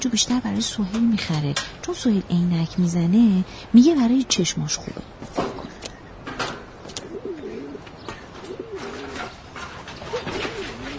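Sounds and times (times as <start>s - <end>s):
speech: 0.1s - 5.5s
pigeons cooing near a pigeon cage: 6.9s - 10.9s.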